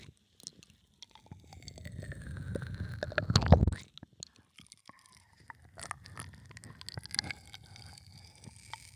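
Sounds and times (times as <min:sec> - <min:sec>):
ASMR ear licking in one ear: 0:01.5 - 0:07.5.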